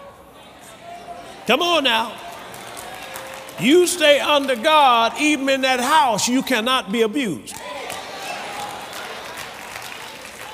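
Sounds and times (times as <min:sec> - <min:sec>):
speech: 0:01.5 - 0:02.2, 0:03.6 - 0:07.7
audience hand clapping: 0:01.8 - 0:05.4, 0:07.5 - 0:10.5.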